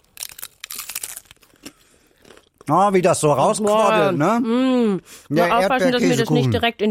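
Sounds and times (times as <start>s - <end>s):
biting into a crisp shell filled with quark and strawberries: 0.0s - 2.6s
speech: 2.7s - 6.8s.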